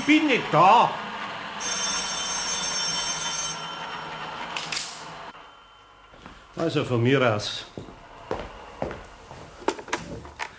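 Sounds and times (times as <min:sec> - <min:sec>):
speech: 0:00.0 - 0:01.0, 0:06.6 - 0:08.0
telephone ringing: 0:01.6 - 0:06.1.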